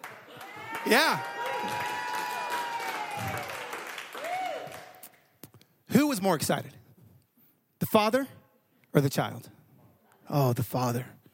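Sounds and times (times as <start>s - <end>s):
audience applause and cheering: 0.0s - 5.2s
speech: 0.8s - 1.8s, 6.0s - 6.8s, 7.9s - 9.6s, 10.3s - 11.2s.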